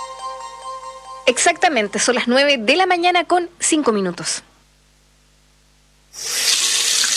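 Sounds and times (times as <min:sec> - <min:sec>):
speech: 0:01.3 - 0:04.5
water rushing from an opened tap: 0:06.2 - 0:07.1.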